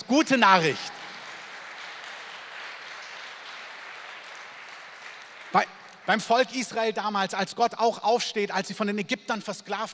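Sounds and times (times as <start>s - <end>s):
audience applause: 0.0s - 6.5s
speech: 0.1s - 1.0s, 5.5s - 9.9s.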